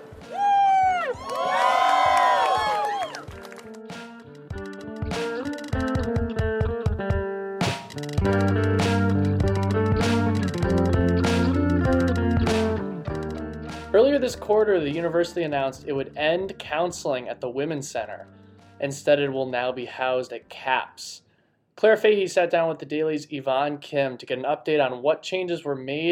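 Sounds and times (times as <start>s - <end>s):
rally crowd cheering and shouting: 0.0s - 3.3s
rhythmic clapping or beats: 1.1s - 7.0s, 7.6s - 15.1s
speech: 14.2s - 21.2s, 21.8s - 26.1s.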